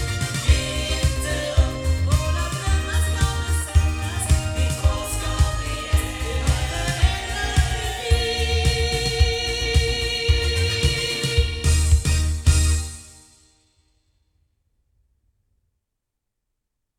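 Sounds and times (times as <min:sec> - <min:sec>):
loudspeakers recorded with an MXL 600: 0:00.0 - 0:13.0.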